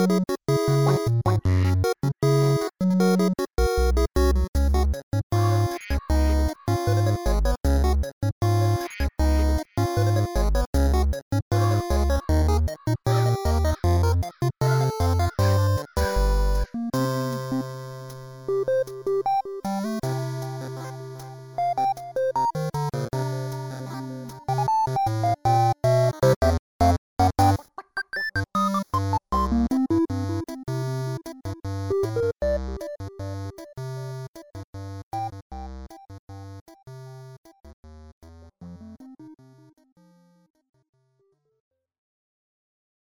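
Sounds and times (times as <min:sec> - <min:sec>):
chiptune menu music: 0:00.0 - 0:23.6, 0:24.5 - 0:34.3.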